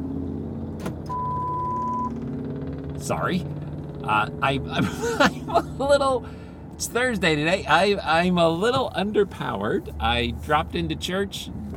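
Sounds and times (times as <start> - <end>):
car engine and road rumble driving home: 0.0 - 11.7
high steady electronic beep: 1.1 - 2.1
speech: 3.0 - 11.7.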